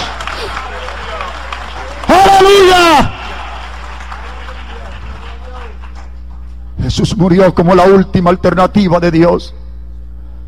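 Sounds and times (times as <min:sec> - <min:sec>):
audience applause: 0:00.0 - 0:06.5
speech: 0:07.0 - 0:09.6.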